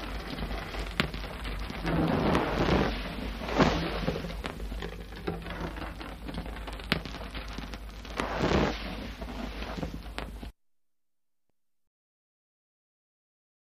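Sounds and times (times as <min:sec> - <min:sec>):
hand-held torch fire: 0:00.0 - 0:10.5.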